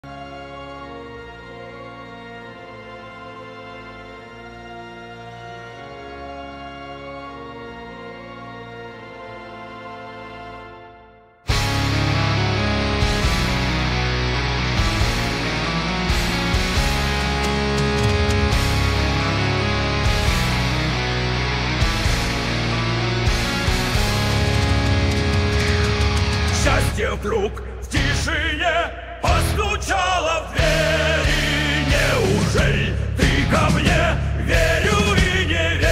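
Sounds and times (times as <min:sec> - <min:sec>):
epic power metal music: 0:11.5 - 0:35.9.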